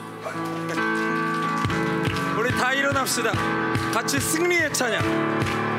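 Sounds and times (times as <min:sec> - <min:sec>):
audience applause: 0:00.2 - 0:04.0
speech: 0:02.6 - 0:05.7.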